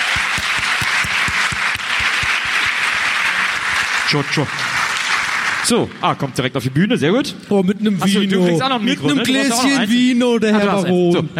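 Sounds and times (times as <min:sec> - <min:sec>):
audience applause: 0:00.0 - 0:06.0
speech: 0:04.1 - 0:04.8, 0:05.6 - 0:11.3.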